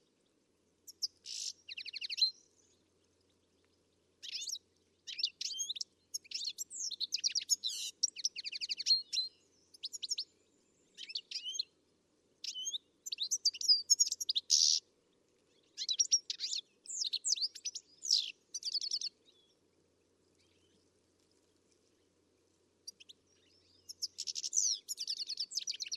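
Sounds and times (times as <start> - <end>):
bird chirping: 0.9 - 11.8, 12.4 - 14.8, 15.4 - 19.7, 20.3 - 22.0, 22.8 - 25.9.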